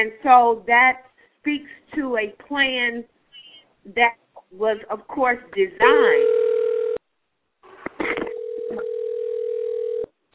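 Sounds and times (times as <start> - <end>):
speech: 0.0 - 3.1, 3.8 - 6.4
telephone line tone of incoming call: 5.8 - 7.0, 8.3 - 10.1.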